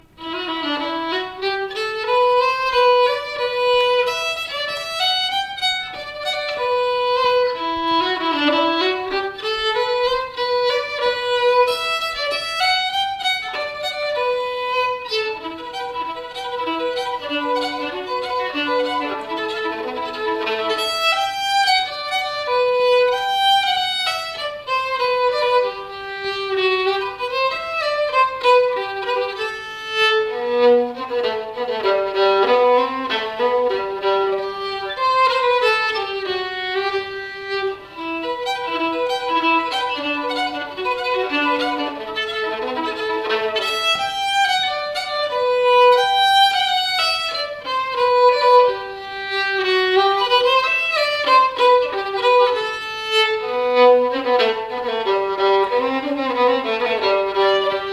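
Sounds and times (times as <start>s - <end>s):
slängpolska folk dance tune: 0.0s - 57.9s.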